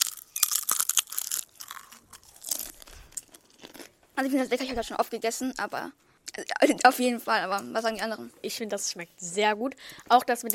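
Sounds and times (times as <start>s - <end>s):
crunching a paprika crisp with Kinderriegel chocolate and pistachio: 0.0s - 3.9s
speech: 4.2s - 10.5s.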